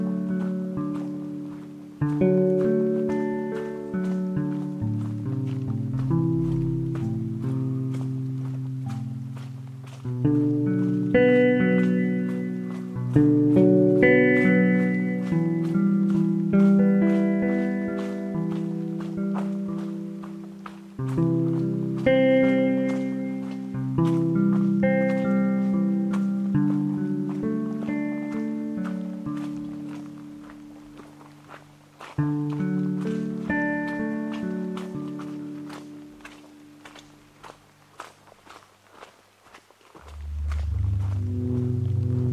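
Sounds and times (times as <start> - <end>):
footsteps on the Patricia Lake Loop Trail: 0.0 - 42.3
layered hum of low sustained tones: 40.0 - 42.3.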